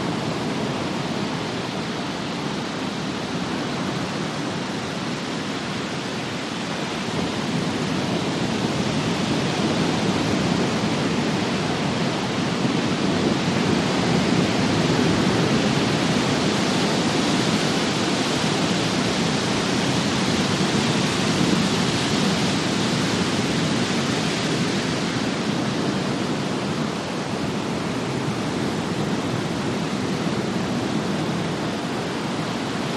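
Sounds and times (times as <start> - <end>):
heavy rumbling surf and waves: 0.0 - 32.9.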